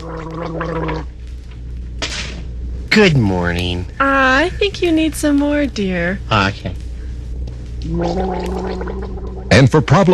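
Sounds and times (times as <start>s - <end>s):
person gargling with minty antiseptic mouthwash: 0.0s - 1.1s, 7.8s - 9.7s
speech: 0.2s - 1.2s, 3.0s - 6.8s, 7.8s - 10.1s.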